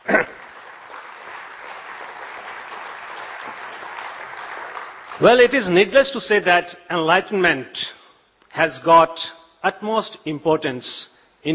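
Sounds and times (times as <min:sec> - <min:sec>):
audience applause for the organizer: 0:00.0 - 0:05.7
speech: 0:05.2 - 0:08.0, 0:08.6 - 0:11.5.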